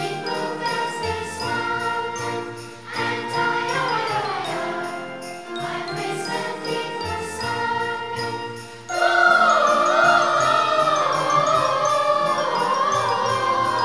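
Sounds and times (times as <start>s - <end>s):
children's choir singing a Christmas carol: 0.0s - 13.8s.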